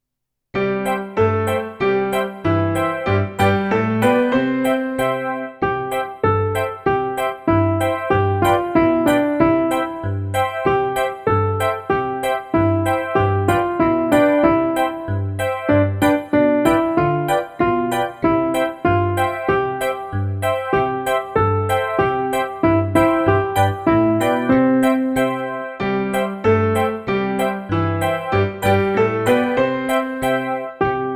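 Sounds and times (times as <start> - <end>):
instrumental music without vocals: 0.6 - 31.1.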